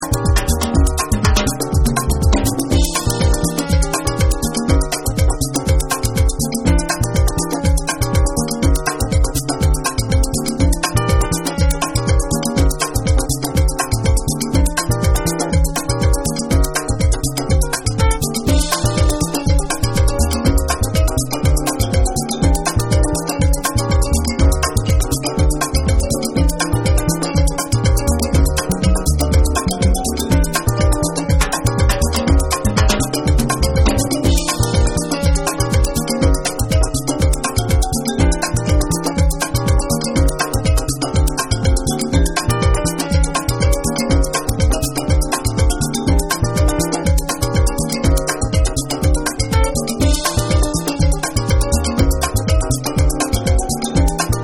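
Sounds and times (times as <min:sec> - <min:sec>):
Latin dub music: 0:00.0 - 0:54.4.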